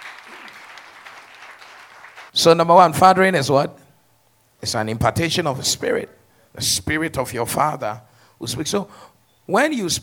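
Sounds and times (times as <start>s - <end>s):
audience clapping hands: 0.0s - 2.4s
speech: 2.4s - 3.8s, 4.6s - 10.0s.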